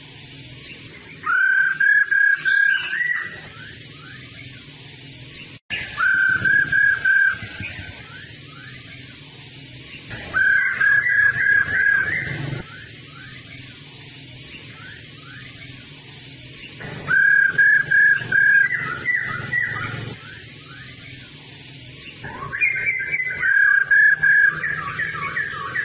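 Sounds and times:
laughingthrush whistling: 0:01.2 - 0:04.2, 0:05.8 - 0:08.8, 0:10.2 - 0:13.4, 0:17.1 - 0:20.8, 0:22.3 - 0:25.8.

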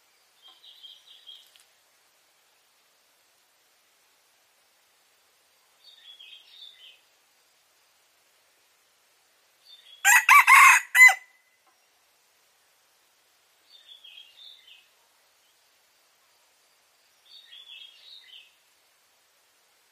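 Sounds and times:
red junglefowl crowing: 0:10.0 - 0:11.4.

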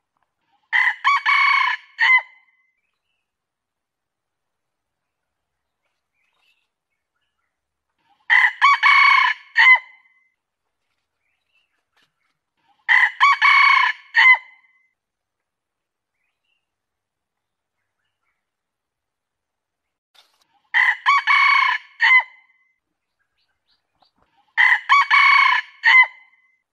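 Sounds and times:
junglefowl crowing: 0:00.7 - 0:02.4, 0:08.3 - 0:09.9, 0:12.9 - 0:14.6, 0:20.7 - 0:22.4, 0:24.6 - 0:26.4.

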